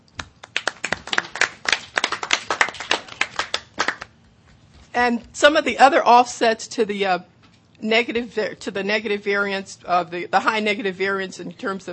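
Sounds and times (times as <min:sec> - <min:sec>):
group of people clapping: 0:00.2 - 0:04.1
speech: 0:05.0 - 0:11.9.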